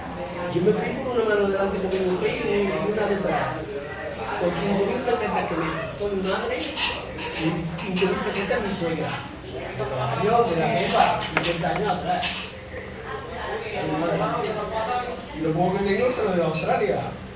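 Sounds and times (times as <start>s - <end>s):
women and men chattering in a bar in Barcelona: 0.0s - 17.3s.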